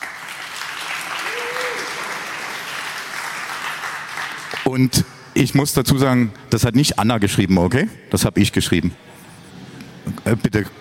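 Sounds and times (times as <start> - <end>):
audience applause: 0.0 - 4.7
speech: 4.7 - 9.1, 10.3 - 10.7.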